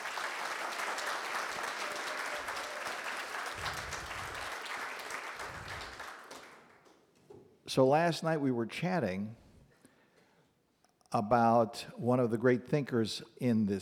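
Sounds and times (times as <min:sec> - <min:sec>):
audience applause: 0:00.0 - 0:06.9
speech: 0:07.7 - 0:09.4, 0:11.1 - 0:13.7.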